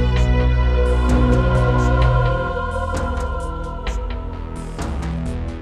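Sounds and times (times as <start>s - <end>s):
Roland SD-50 synthesizer tones in GS mode: 0.1s - 5.3s.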